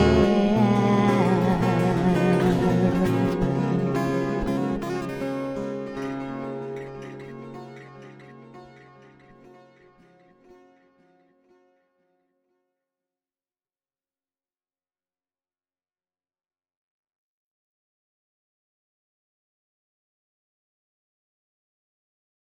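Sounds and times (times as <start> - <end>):
guitar playing: 0.0 - 11.7.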